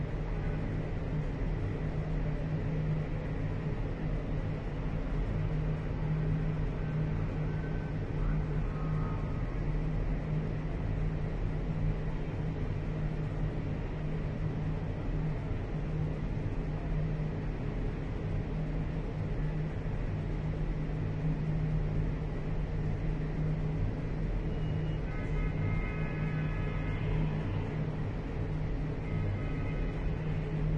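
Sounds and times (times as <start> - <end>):
Michigan Avenue street noise from inside 24th floor windows: 0.0 - 30.7.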